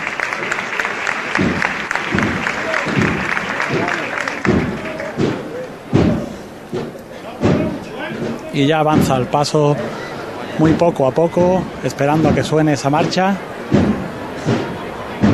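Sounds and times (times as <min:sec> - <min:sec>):
crowd applause at a large outdoor gathering: 0:00.0 - 0:06.6, 0:08.2 - 0:15.3
voices murmuring: 0:00.0 - 0:15.3
speech: 0:08.6 - 0:10.0, 0:10.6 - 0:14.6.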